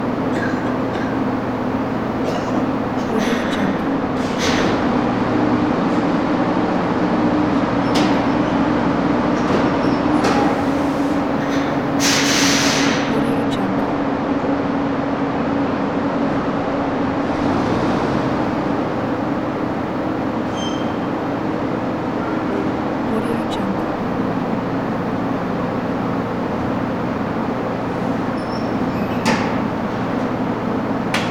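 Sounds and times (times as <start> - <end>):
bus station ambience: 0.0 - 31.2.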